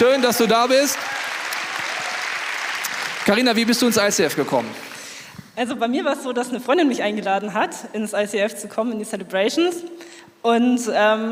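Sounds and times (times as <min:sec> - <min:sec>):
speech: 0:00.0 - 0:01.2, 0:03.3 - 0:04.9, 0:05.6 - 0:11.2
audience applause: 0:00.0 - 0:05.3.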